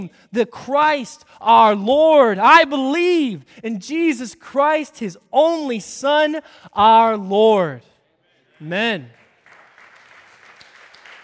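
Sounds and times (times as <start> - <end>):
speech: 0.0 - 7.9, 8.6 - 9.2
audience applauding: 9.2 - 11.2.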